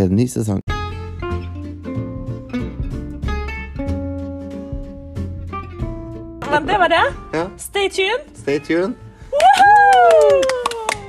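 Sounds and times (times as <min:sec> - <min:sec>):
speech: 0:00.0 - 0:00.7, 0:06.6 - 0:10.6
long bright whooping cheer: 0:09.3 - 0:11.0
scattered applause: 0:09.3 - 0:11.0.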